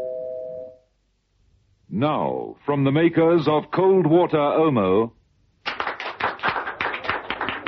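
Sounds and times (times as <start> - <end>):
speech: 2.0 - 5.8
applause in the Bahraini embassy reception room: 5.6 - 7.6.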